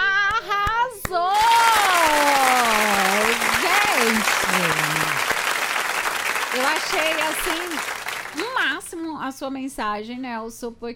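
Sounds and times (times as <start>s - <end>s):
hand claps: 0.1s - 8.7s
speech: 9.2s - 10.9s.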